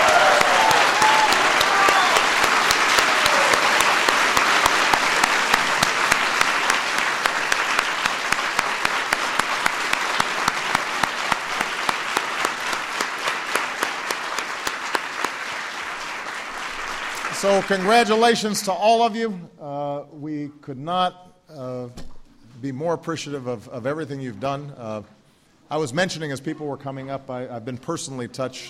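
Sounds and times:
audience round of applause: 0:00.0 - 0:18.3
speech: 0:17.5 - 0:28.6.

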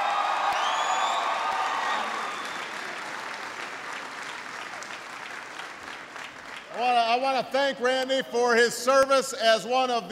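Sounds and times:
audience applause: 0:00.0 - 0:07.0
speech: 0:06.8 - 0:10.1.

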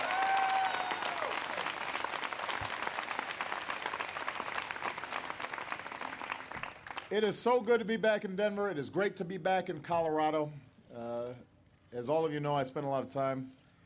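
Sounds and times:
crowd applause: 0:00.0 - 0:07.1
speech: 0:07.1 - 0:13.6.

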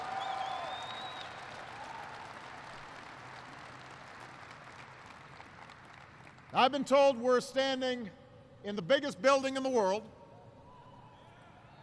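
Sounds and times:
audience applause: 0:00.0 - 0:06.5
speech: 0:06.5 - 0:10.2.

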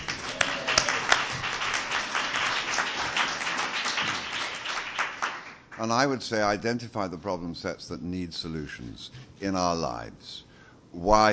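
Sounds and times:
clapping: 0:00.0 - 0:05.8
speech: 0:05.8 - 0:11.3.

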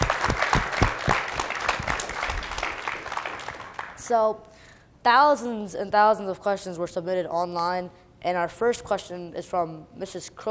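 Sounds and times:
audience applause: 0:00.0 - 0:04.0
speech: 0:04.1 - 0:10.4.

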